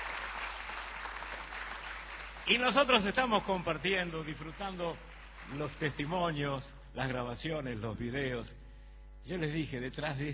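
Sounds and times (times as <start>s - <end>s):
audience applause: 0.0s - 2.9s, 4.0s - 6.1s
speech: 2.5s - 8.6s, 9.2s - 10.3s.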